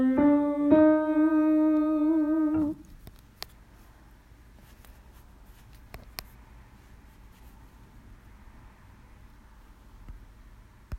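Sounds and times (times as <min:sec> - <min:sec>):
solo melody: 0:00.0 - 0:02.9.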